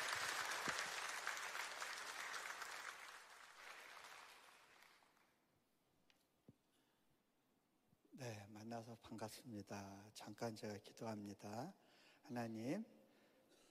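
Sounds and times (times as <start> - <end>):
audience applause: 0.0 - 5.2
speech: 8.2 - 13.0.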